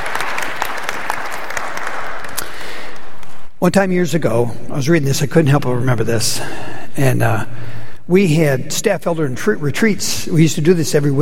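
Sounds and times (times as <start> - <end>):
audience applause: 0.0 - 3.2
speech: 3.6 - 11.1.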